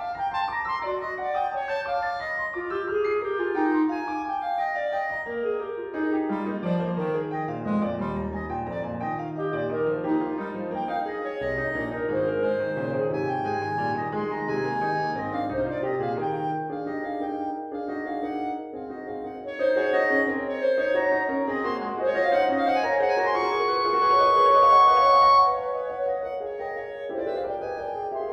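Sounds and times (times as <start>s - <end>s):
clarinet playing a fugue: 0.0s - 28.3s
piano playing a little fugue: 0.0s - 28.3s.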